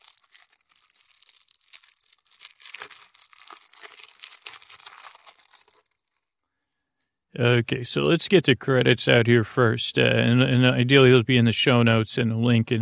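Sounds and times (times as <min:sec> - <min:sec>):
plastic wrap being torn off a Fairytale Gloom card game box: 0:00.0 - 0:06.4
speech: 0:07.4 - 0:12.8.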